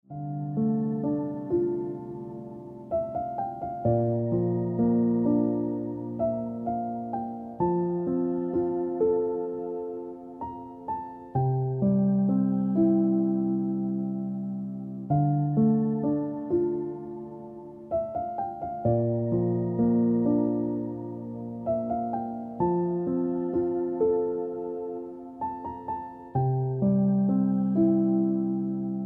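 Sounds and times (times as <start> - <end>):
piano ringtone music: 0.1 - 29.0.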